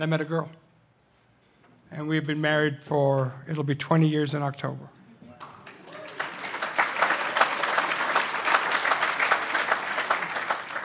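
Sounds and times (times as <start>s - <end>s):
speech: 0.0s - 0.6s, 1.9s - 5.0s
audience applause: 5.6s - 10.8s.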